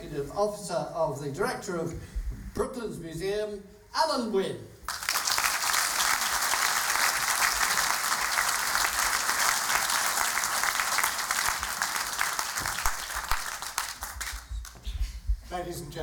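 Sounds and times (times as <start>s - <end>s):
speech: 0.1s - 4.7s, 15.7s - 16.0s
audience applause welcoming a speaker: 4.9s - 14.8s.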